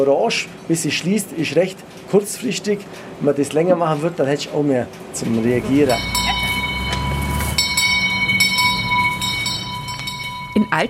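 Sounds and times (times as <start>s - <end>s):
speech: 0.0s - 6.2s
brief metallic clanks from train wheels: 5.2s - 10.8s
constant high warning tone at level crossing barrier: 5.2s - 10.8s
train rumbling past a level crossing: 5.2s - 10.8s.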